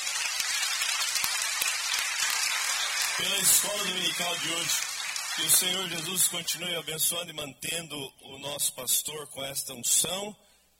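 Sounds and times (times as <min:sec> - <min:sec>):
audience applause: 0:00.0 - 0:06.8
speech: 0:03.2 - 0:04.8, 0:05.4 - 0:10.5.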